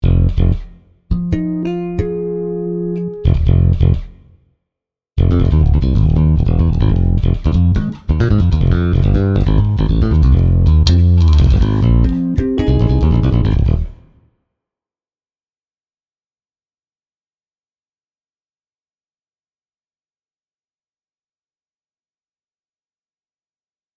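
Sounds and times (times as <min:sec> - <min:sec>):
bass solo: 0:00.0 - 0:04.2, 0:05.2 - 0:14.1.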